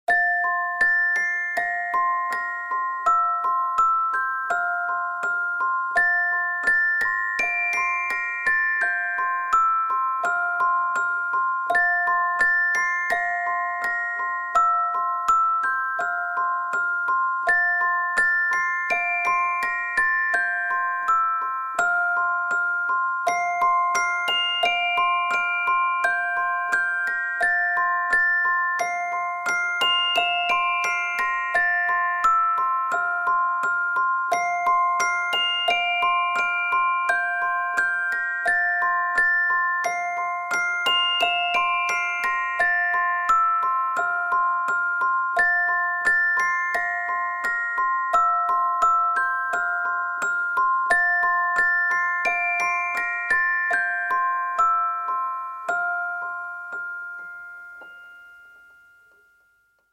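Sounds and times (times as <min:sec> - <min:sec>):
lullaby music: 0:00.1 - 0:59.9.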